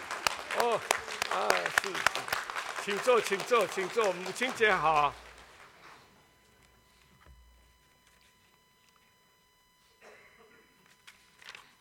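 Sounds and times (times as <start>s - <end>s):
audience applause: 0.0s - 5.9s
speech: 0.7s - 5.2s.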